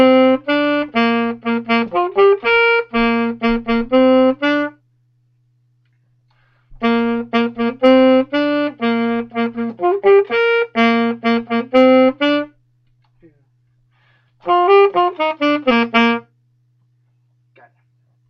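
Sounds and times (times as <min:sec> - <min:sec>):
saxophone: 0:00.0 - 0:04.8, 0:06.7 - 0:12.6, 0:14.4 - 0:16.4.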